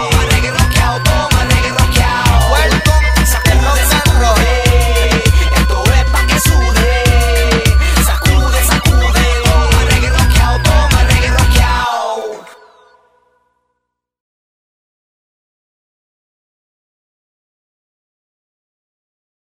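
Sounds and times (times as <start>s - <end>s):
reggae music: 0.0s - 12.9s.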